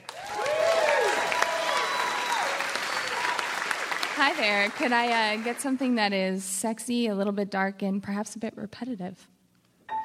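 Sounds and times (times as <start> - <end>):
comedy show audience applauding to welcome a guest: 0.0 - 6.0
speech: 4.2 - 9.4.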